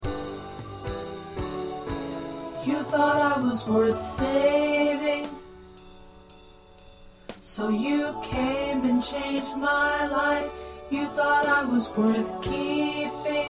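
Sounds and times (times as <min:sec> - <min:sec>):
tenor singing: 0:02.5 - 0:05.6, 0:07.5 - 0:13.4.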